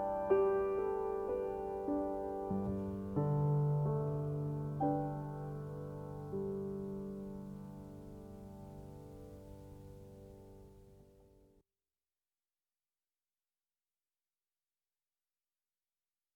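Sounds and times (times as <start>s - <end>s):
piano piece: 0.0s - 11.5s.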